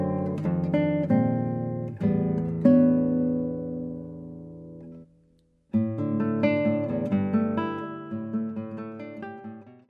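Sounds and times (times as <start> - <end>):
panoramic guitar: 0.0 - 9.8.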